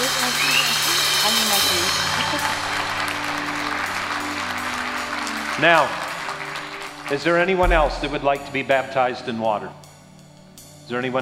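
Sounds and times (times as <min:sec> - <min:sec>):
audience applauding: 0:00.0 - 0:08.5
speech: 0:01.2 - 0:02.6, 0:05.6 - 0:06.0, 0:07.1 - 0:09.8, 0:10.9 - 0:11.2.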